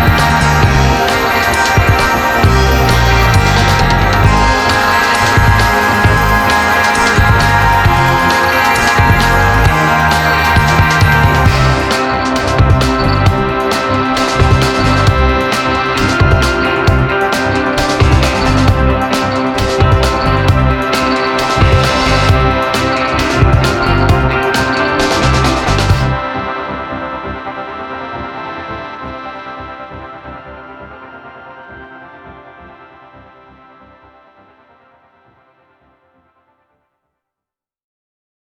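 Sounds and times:
instrumental music: 0.0 - 26.6.

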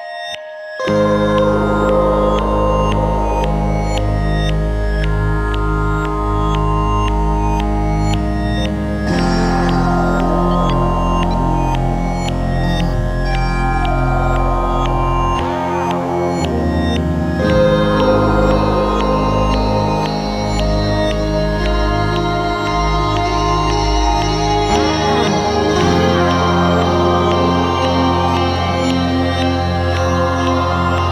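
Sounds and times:
planetary ambience: 0.8 - 31.1.

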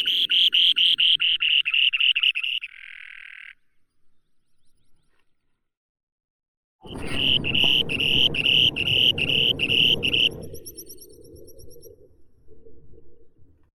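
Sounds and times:
spoon-billed sandpiper Eurynorhynchus pygmaeus calling: 0.0 - 3.6, 6.9 - 11.9.

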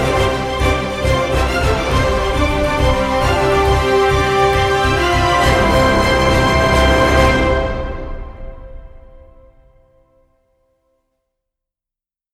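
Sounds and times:
light percussion: 0.0 - 9.8.

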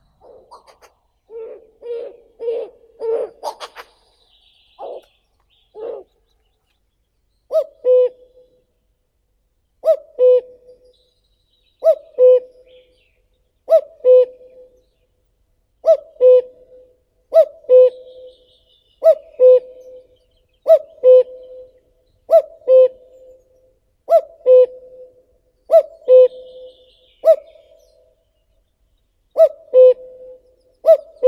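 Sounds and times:
common cuckoo Cuculus canorus calling: 0.0 - 6.8, 7.5 - 8.6, 9.8 - 10.9, 11.8 - 13.0, 13.6 - 14.8, 15.8 - 28.1, 29.3 - 31.2.

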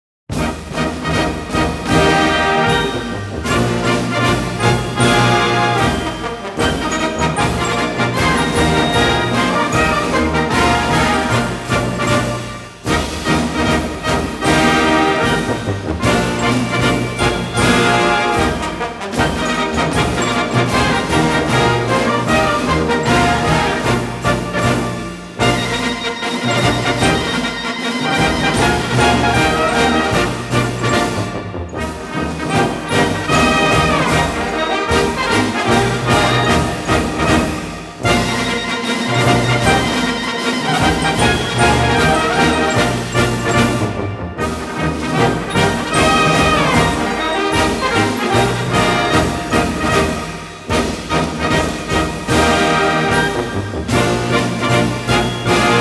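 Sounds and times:
military band march: 0.3 - 55.7.

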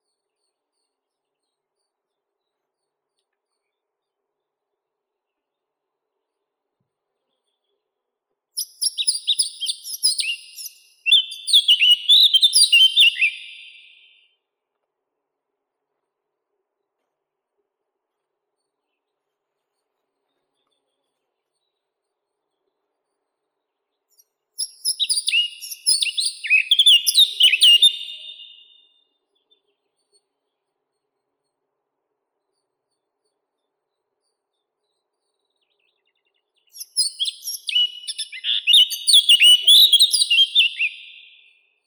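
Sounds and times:
Sylvia atricapilla blackcap singing: 8.6 - 14.2, 24.1 - 28.8, 36.6 - 41.5.

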